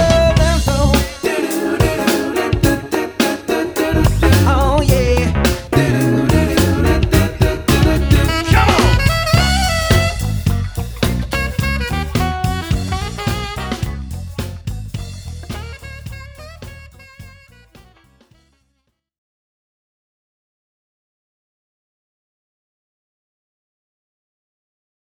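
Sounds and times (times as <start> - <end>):
party band playing: 0.0 - 18.4.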